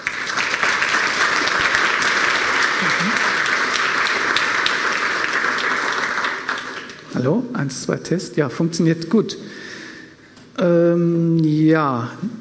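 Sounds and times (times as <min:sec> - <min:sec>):
audience applause: 0:00.0 - 0:07.1
speech: 0:07.2 - 0:09.5, 0:10.6 - 0:12.3.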